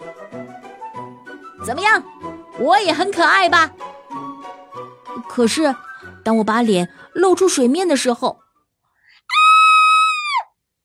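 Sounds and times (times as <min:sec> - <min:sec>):
speech: 0:01.6 - 0:03.8, 0:05.3 - 0:08.4
high-pitched scream: 0:09.3 - 0:10.5.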